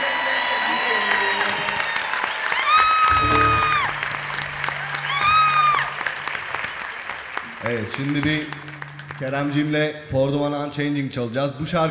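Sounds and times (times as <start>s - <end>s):
audience applause welcoming a guest: 0.0s - 9.5s
speech: 7.7s - 11.8s.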